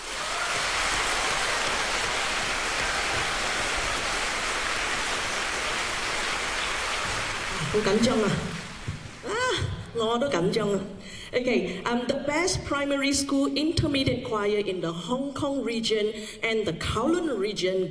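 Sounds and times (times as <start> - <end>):
audience applause for choir teachers: 0.0 - 9.3
speech: 7.7 - 8.5, 10.0 - 17.8.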